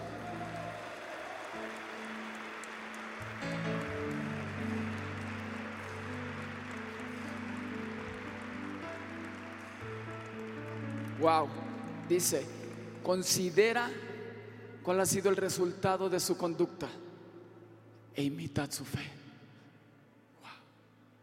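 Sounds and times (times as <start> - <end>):
crowd applause: 0.0 - 12.9
low held organ or keyboard chord: 2.0 - 11.1
speech: 11.2 - 14.1, 14.8 - 17.0, 18.2 - 19.2.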